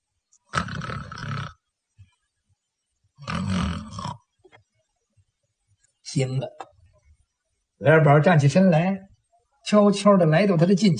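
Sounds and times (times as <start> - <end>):
person imitating light snoring: 0.5 - 1.6, 3.2 - 4.2
speech: 6.2 - 6.7, 7.8 - 10.9.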